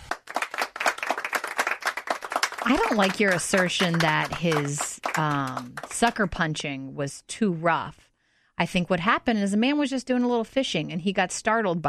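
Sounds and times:
hands clapping: 0:00.0 - 0:06.3
speech: 0:02.7 - 0:11.8.

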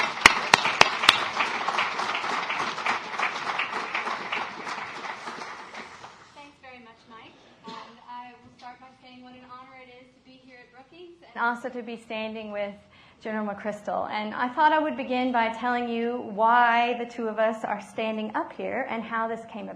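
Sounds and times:
audience applause welcoming two professors at a Brookings event: 0:00.0 - 0:06.4
speech: 0:11.4 - 0:19.7.

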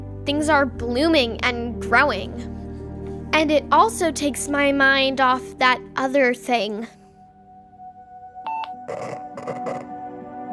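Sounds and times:
speech: 0:00.3 - 0:02.6, 0:03.3 - 0:07.0
walkie-talkie beeps: 0:08.5 - 0:09.9
walkie-talkie static crackle: 0:08.9 - 0:09.9
walkie-talkie steady electronic hum: 0:08.9 - 0:09.9.

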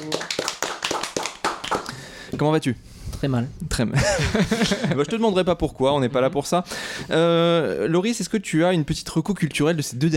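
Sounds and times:
applause: 0:00.0 - 0:01.9
speech: 0:02.4 - 0:10.1
laughter: 0:04.0 - 0:05.2.

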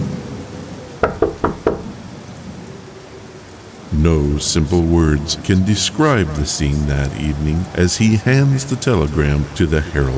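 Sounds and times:
knocking on a door: 0:01.0 - 0:01.9
speech: 0:04.0 - 0:10.1.

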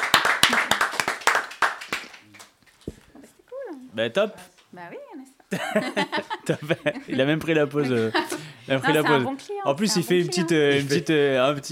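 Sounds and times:
audience applause: 0:00.0 - 0:02.5
speech: 0:04.0 - 0:11.7
laughter: 0:05.5 - 0:08.8.

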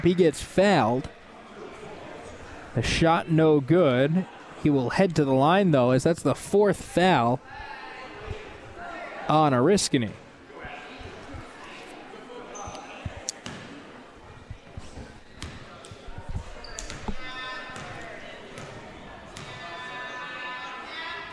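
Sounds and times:
speech: 0:00.0 - 0:01.2, 0:02.8 - 0:07.7, 0:09.3 - 0:10.2
crowd noise: 0:00.0 - 0:21.3
basketball dribbled before a free throw in a school game: 0:15.4 - 0:16.0, 0:18.6 - 0:18.8.

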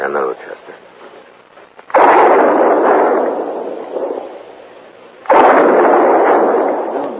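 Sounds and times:
gunshots fired as a signal for help near a herd of buffalo: 0:01.9 - 0:07.1.

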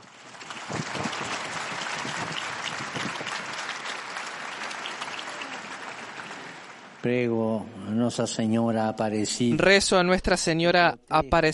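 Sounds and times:
applause: 0:00.0 - 0:07.1
speech: 0:07.0 - 0:11.5.

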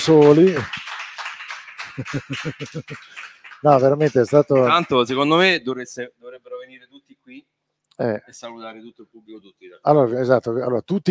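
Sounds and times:
speech: 0:00.0 - 0:00.8, 0:02.0 - 0:11.0
audience applauding: 0:00.0 - 0:05.6
laughter: 0:01.8 - 0:05.2.

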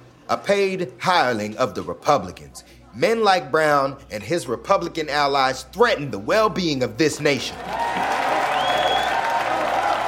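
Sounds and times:
speech: 0:00.3 - 0:08.0
crowd of Virginians cheering: 0:07.4 - 0:10.0.

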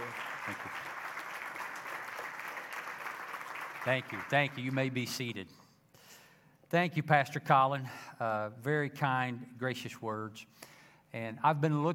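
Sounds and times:
church audience applause welcoming a pastor: 0:00.0 - 0:05.0
speech: 0:03.8 - 0:05.6, 0:06.7 - 0:11.9.

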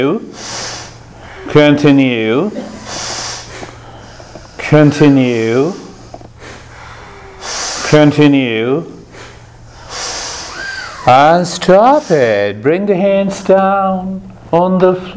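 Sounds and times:
speech: 0:00.0 - 0:00.6, 0:01.4 - 0:02.9, 0:04.7 - 0:05.8, 0:07.9 - 0:09.0, 0:11.1 - 0:15.1
long hissing breaths in a guided meditation breathing exercise: 0:00.3 - 0:02.0, 0:02.6 - 0:08.1, 0:09.0 - 0:12.4.

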